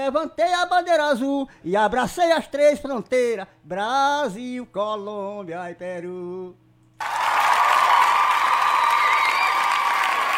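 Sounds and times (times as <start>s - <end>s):
speech: 0.0s - 7.2s
crowd applauding: 7.0s - 10.3s.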